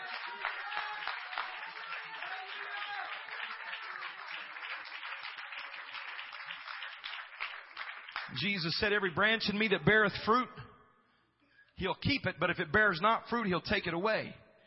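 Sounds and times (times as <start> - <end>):
audience clapping hands: 0.0 - 9.0
speech: 8.3 - 10.6, 11.8 - 14.4.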